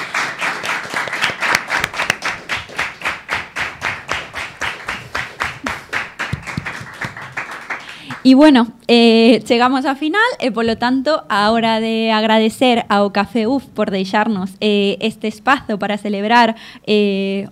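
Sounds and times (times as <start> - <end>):
audience applause: 0.0 - 8.2
speech: 8.2 - 17.5.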